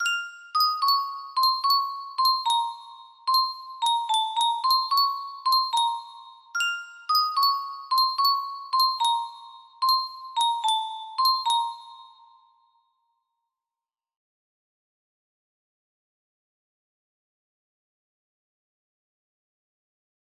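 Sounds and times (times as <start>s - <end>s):
creepy music box melody: 0.0s - 13.2s.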